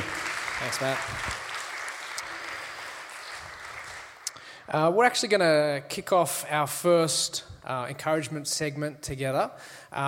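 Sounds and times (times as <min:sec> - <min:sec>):
round of applause: 0:00.0 - 0:04.6
speech: 0:00.6 - 0:01.4, 0:04.7 - 0:10.0.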